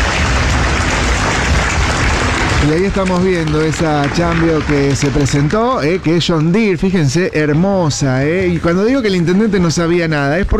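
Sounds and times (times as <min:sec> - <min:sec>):
crowd applause at an outdoor civic celebration of Casilda's 119th anniversary: 0:00.0 - 0:07.2
speech: 0:02.6 - 0:10.5.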